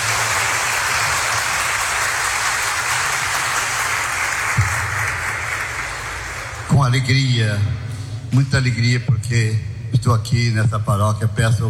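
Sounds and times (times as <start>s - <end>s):
audience applauding: 0.0s - 6.7s
speech: 6.9s - 11.6s.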